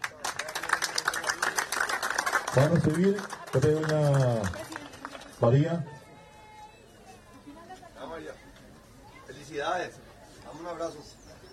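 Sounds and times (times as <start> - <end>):
audience applause: 0.0 - 5.4
speech: 2.6 - 4.6, 5.4 - 6.0, 9.5 - 11.2.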